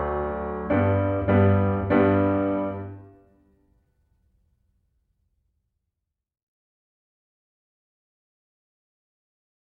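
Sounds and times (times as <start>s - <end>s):
piano: 0.0s - 3.6s.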